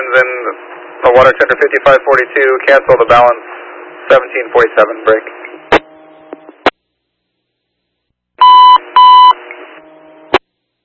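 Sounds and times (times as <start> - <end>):
faint hum: 0.0 - 10.8
speech: 0.1 - 3.5, 4.1 - 5.4
radio dispatch alert tone beeps: 8.4 - 9.4.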